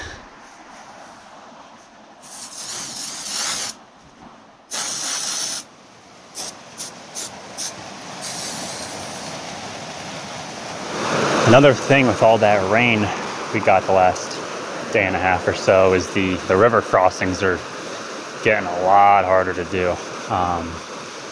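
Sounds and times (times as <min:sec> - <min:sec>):
faint outdoor background: 0:00.0 - 0:21.3
aerosol foot powder spray hissing: 0:02.2 - 0:03.8, 0:04.7 - 0:05.7, 0:06.4 - 0:09.4
speech: 0:11.5 - 0:14.3, 0:14.9 - 0:17.7, 0:18.4 - 0:20.9.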